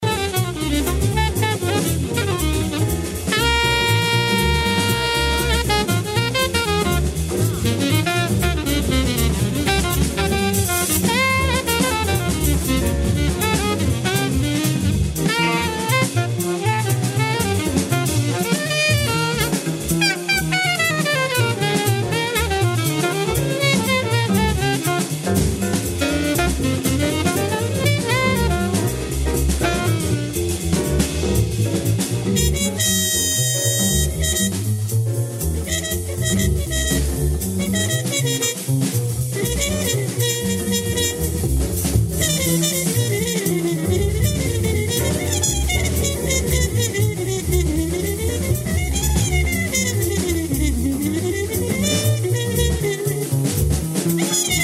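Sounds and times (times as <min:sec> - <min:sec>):
jazz music: 0:00.0 - 0:54.6.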